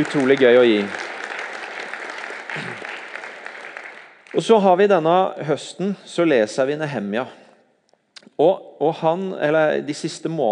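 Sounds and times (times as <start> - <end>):
speech: 0.0 - 1.0, 2.6 - 2.9, 4.4 - 7.4, 8.3 - 10.5
crowd applauding: 0.0 - 4.7.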